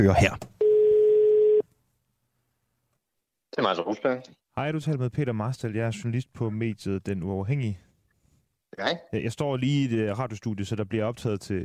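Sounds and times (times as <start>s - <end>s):
speech: 0.0s - 0.5s, 3.6s - 7.8s, 8.7s - 11.6s
telephone ringing tone on an outgoing call: 0.6s - 1.6s.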